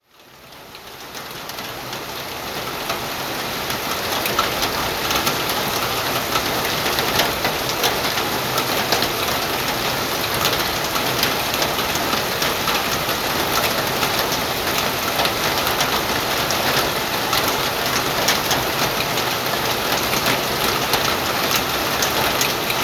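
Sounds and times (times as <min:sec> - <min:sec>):
rain on roof: 0:00.0 - 0:22.8.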